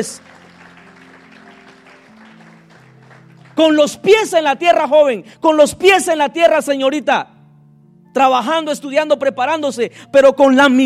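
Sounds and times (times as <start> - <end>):
speech: 0.0 - 0.4, 3.6 - 7.3, 8.2 - 10.8
applause: 0.0 - 4.4.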